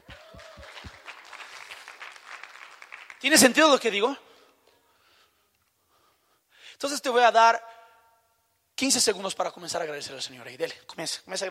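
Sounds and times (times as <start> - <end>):
audience applause: 0.0 - 3.3
speech: 3.2 - 4.2, 7.1 - 7.7, 8.8 - 11.4.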